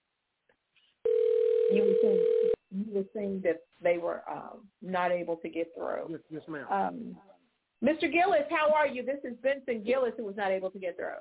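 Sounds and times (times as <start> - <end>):
telephone dial tone as a call is placed: 1.1 - 2.6
speech: 3.0 - 11.1.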